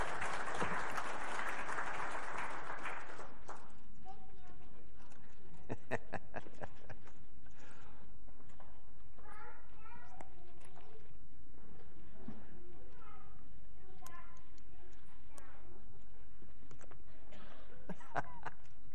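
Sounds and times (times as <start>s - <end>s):
audience applause: 0.0s - 3.7s
laughter: 5.6s - 7.2s, 17.7s - 18.8s.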